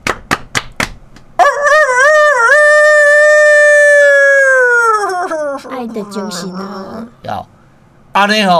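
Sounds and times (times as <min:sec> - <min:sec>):
rooster crowing: 0:01.4 - 0:05.8
speech: 0:05.8 - 0:07.6, 0:08.2 - 0:08.5.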